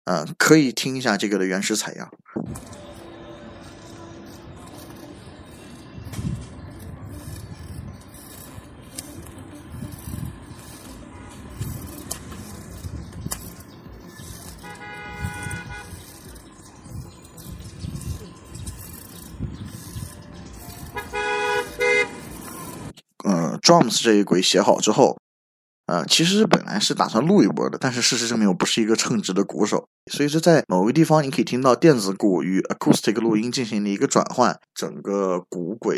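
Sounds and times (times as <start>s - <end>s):
speech: 0.0s - 2.8s, 23.7s - 25.2s, 25.9s - 35.9s
steady rumble of street traffic with cars passing: 2.5s - 23.0s
car horn honking: 14.5s - 16.2s, 20.9s - 22.4s.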